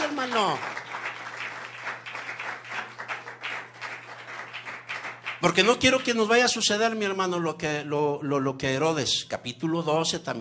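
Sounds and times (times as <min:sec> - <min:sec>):
audience applause: 0:00.0 - 0:06.2
speech: 0:00.2 - 0:00.9, 0:05.4 - 0:10.3.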